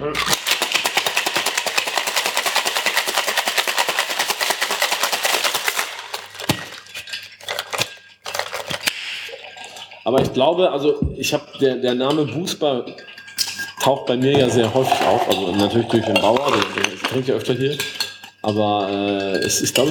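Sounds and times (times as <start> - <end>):
cocktail shaker being shaken: 0.2 - 8.9, 14.4 - 19.8
speech: 10.1 - 13.0, 13.8 - 19.8.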